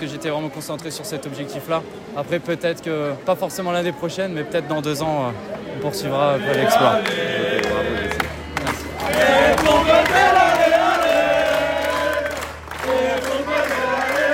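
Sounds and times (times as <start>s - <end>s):
speech: 0.0s - 7.9s
crowd of supporters cheering: 5.5s - 14.3s.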